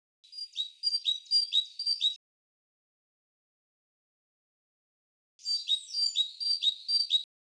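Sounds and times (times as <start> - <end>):
great tit singing: 0.2 - 2.2, 5.4 - 7.3.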